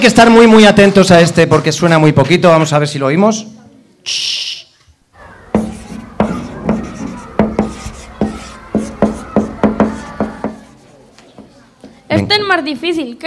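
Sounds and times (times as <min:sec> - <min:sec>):
speech: 0:00.0 - 0:04.6, 0:12.2 - 0:13.2
marker pen writing on a whiteboard: 0:05.5 - 0:11.0.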